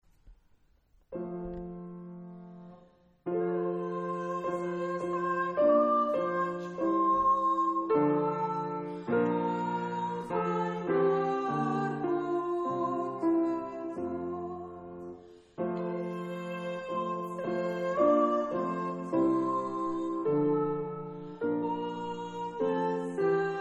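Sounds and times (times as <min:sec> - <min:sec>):
soprano singing a carol: 0:01.2 - 0:23.5.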